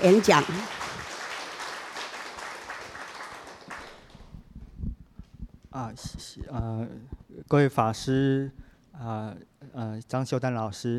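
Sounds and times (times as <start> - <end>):
speech: 0.0 - 0.8, 5.8 - 10.9
warm audience applause: 0.0 - 4.3.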